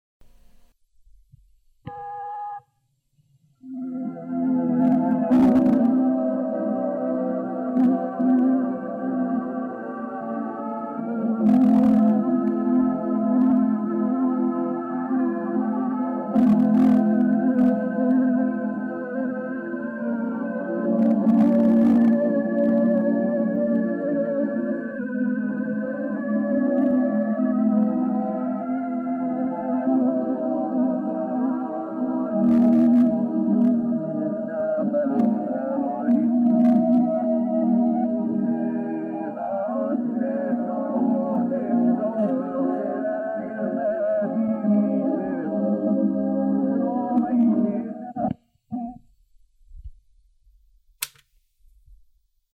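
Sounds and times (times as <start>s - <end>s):
second choir voice singing: 3.8s - 48.2s.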